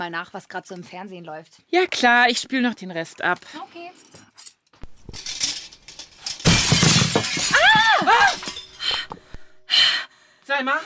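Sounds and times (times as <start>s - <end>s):
speech: 0.0s - 4.3s, 10.5s - 10.8s
window glass shattering from thrown stone: 4.9s - 8.9s.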